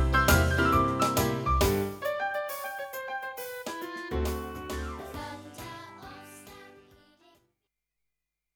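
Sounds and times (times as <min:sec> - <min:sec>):
blues music: 0:00.0 - 0:06.7.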